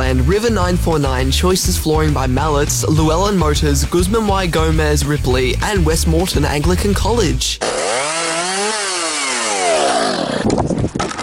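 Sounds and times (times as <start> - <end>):
speech: 0.1 - 8.1
chainsaw cutting storm-damaged trees: 7.6 - 11.2.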